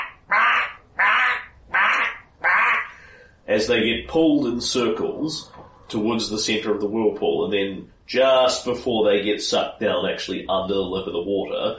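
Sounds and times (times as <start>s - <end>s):
black swans barking: 0.0s - 3.0s
speech: 3.5s - 11.7s.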